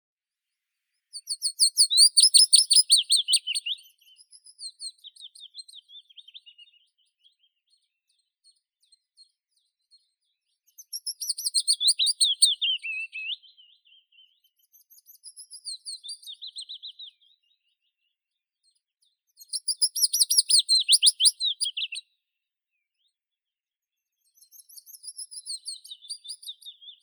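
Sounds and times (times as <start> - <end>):
Phylloscopus trochilus willow warbler singing: 1.2 - 7.5, 10.7 - 17.8, 19.4 - 22.0, 24.4 - 27.0.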